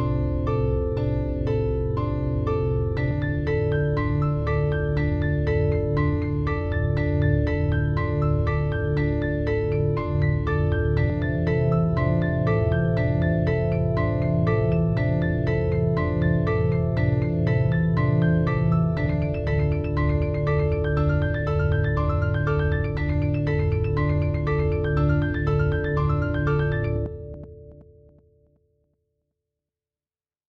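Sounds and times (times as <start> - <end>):
classical music: 0.1 - 27.5.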